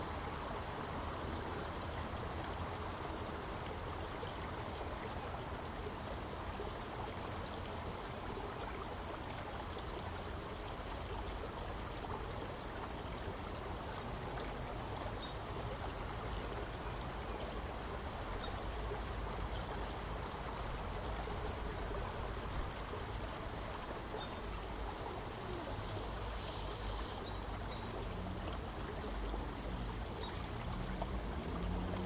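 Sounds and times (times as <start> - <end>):
stream flowing on a sunny spring day: 0.0 - 32.0.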